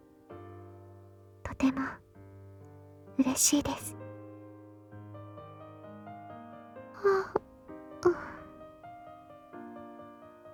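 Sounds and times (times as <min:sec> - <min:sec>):
speech: 0:01.6 - 0:02.0, 0:03.2 - 0:04.0
person yawning: 0:07.0 - 0:07.4, 0:08.0 - 0:08.6.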